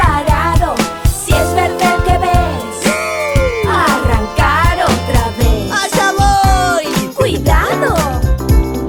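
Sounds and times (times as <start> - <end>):
singing jingles: 0.3 - 8.0.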